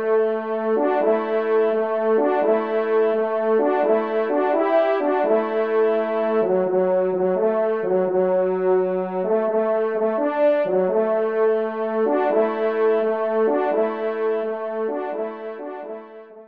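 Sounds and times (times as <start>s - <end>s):
hunting horn: 0.0s - 16.4s.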